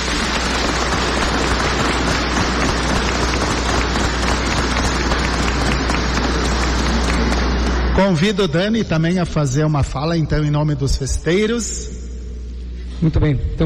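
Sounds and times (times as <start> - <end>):
audience applauding: 0.0 - 7.8
speech: 8.0 - 12.0, 13.0 - 13.6.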